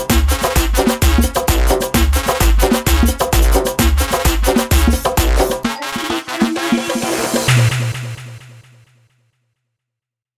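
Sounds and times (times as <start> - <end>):
Arabic guaracha at 130 BPM: 0.0 - 8.2.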